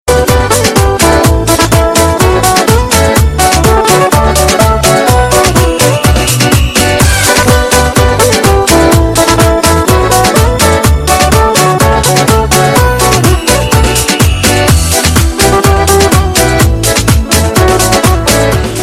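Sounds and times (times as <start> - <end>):
Romanian pop music: 0.1 - 18.8.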